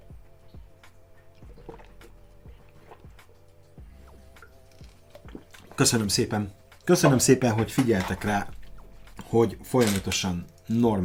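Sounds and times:
steady low tonal hum: 0:00.0 - 0:11.0
person drinking sips of water: 0:01.4 - 0:05.8
speech: 0:05.8 - 0:08.6, 0:09.3 - 0:11.0.

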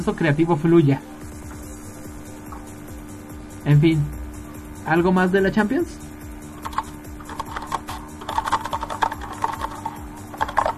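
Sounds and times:
speech: 0:00.0 - 0:01.2, 0:03.6 - 0:04.2, 0:04.8 - 0:06.0
computer keyboard typing: 0:06.6 - 0:10.7.

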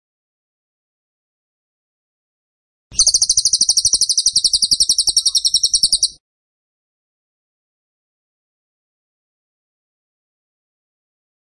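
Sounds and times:
bird rattling song: 0:02.9 - 0:06.2.

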